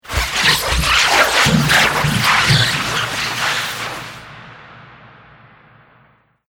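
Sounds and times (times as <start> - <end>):
slurpy alien atmospherics: 0.0 - 4.6.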